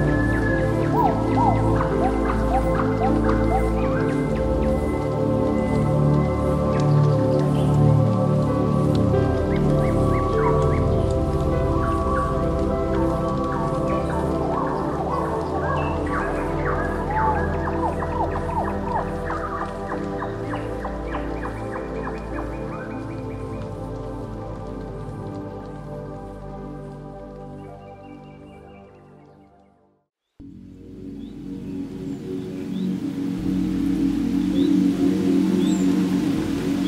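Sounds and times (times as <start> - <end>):
ambient music of sustained layered tones: 0.0 - 36.8.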